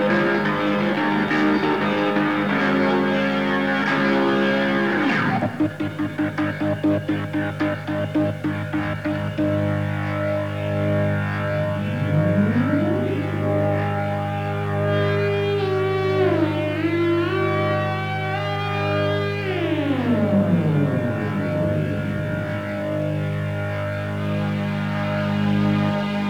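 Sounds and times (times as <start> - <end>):
keyboard solo: 0.0 - 26.2.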